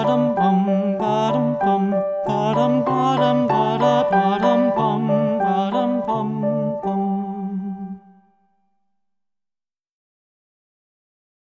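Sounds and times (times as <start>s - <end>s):
French folk song: 0.0s - 8.5s.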